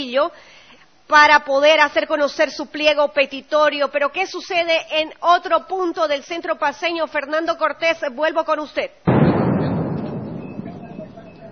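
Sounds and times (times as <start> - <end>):
speech: 0.0 - 9.1
dynamite stick detonations during street clashes: 9.1 - 11.5.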